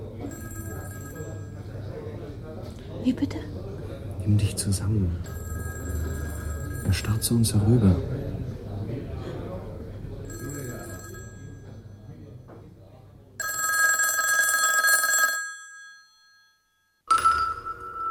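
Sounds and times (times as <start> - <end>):
telephone ringing: 0.0 - 1.8, 5.2 - 8.0, 10.2 - 12.1, 13.4 - 18.0
speech: 3.0 - 3.5, 4.2 - 5.4, 6.9 - 8.2.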